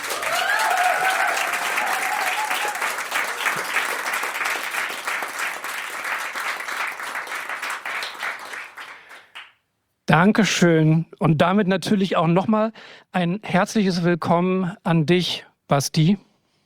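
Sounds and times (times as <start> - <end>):
audience applause at a live show: 0.0 - 9.5
speech: 10.2 - 16.3.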